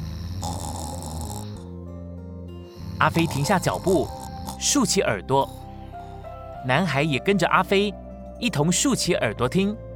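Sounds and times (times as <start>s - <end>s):
grandfather snoring loudly: 0.0s - 1.8s, 2.6s - 5.7s
speech: 3.0s - 5.6s, 6.6s - 9.9s.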